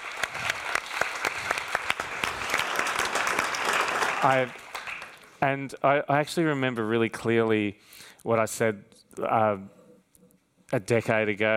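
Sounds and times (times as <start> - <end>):
audience applause: 0.0 - 5.4
speech: 4.2 - 4.6, 5.4 - 9.8, 10.7 - 11.5.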